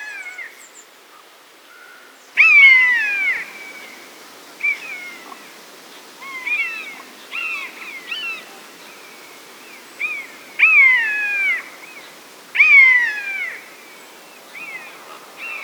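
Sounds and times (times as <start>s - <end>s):
buzzard calling: 2.4s - 5.6s, 6.1s - 12.0s, 12.5s - 13.7s.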